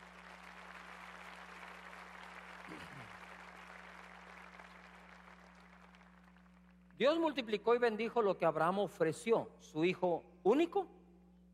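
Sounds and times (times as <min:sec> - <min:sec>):
audience applauding: 0:00.0 - 0:06.8
speech: 0:02.7 - 0:03.2, 0:07.0 - 0:11.0.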